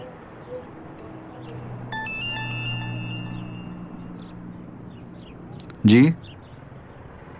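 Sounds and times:
phone ringing with a bright electronic trill: 0:01.9 - 0:04.2
speech: 0:05.8 - 0:06.4.

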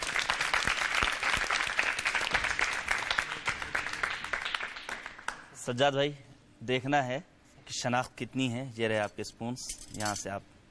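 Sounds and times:
audience applause: 0:00.0 - 0:05.5
speech: 0:05.7 - 0:10.5.

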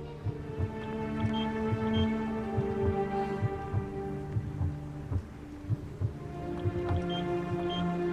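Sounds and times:
mother's heartbeat on fetal monitor: 0:00.0 - 0:08.0.

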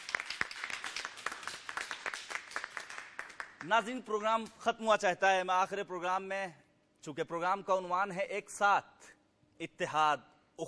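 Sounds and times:
audience applause: 0:00.0 - 0:03.7
speech: 0:03.6 - 0:08.9, 0:09.6 - 0:10.6.

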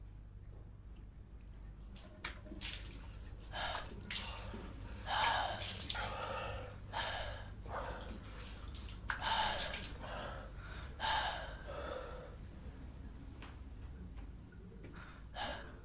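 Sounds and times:
low hum: 0:00.0 - 0:15.8
water splashing as someone washes face and hands: 0:01.9 - 0:06.4, 0:07.8 - 0:10.2.

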